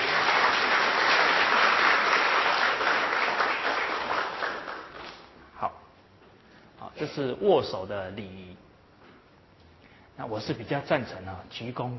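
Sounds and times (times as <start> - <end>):
audience applause: 0.0 - 5.2
speech: 7.0 - 8.6, 10.2 - 11.9.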